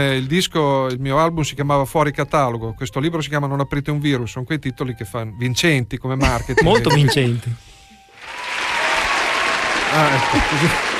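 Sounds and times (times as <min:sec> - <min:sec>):
speech: 0:00.0 - 0:07.7, 0:09.9 - 0:10.9
laughter: 0:06.2 - 0:07.5, 0:10.0 - 0:10.9
applause sound effect: 0:08.2 - 0:10.9.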